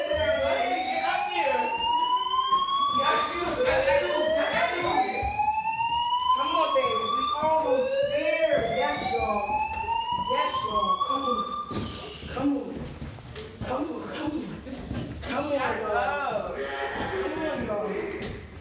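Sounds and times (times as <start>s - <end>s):
fire alarm whooping in Philadelphia: 0.0s - 12.2s
continuous chatter: 0.0s - 18.6s.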